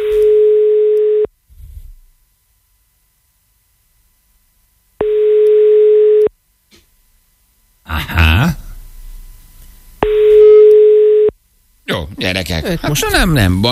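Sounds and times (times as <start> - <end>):
telephone line buzzing tone while a radio station calls a listener: 0.0 - 1.3, 5.0 - 6.3, 10.0 - 11.4
speech: 12.6 - 13.6.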